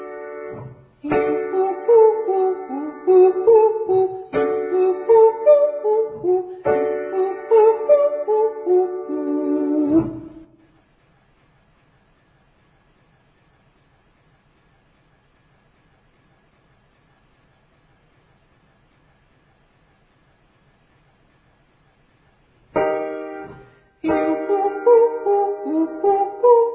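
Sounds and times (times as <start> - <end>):
ascending triads and octaves: 0.0 - 10.5, 22.8 - 26.7.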